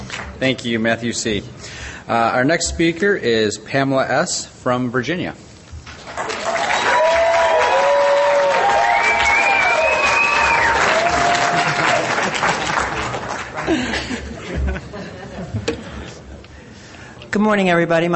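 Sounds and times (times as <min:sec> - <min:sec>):
speech: 0:00.4 - 0:05.4, 0:17.4 - 0:18.1
audience applause and cheering: 0:06.1 - 0:13.5
laughter: 0:11.1 - 0:16.2.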